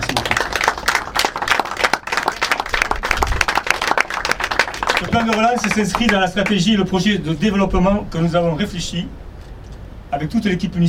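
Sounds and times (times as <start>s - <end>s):
audience applause: 0.0s - 6.6s
speech: 5.1s - 9.2s, 10.1s - 10.8s.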